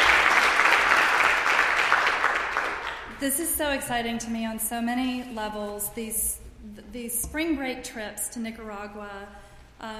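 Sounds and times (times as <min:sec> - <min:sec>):
audience applause: 0:00.0 - 0:03.1
speech: 0:03.2 - 0:09.9.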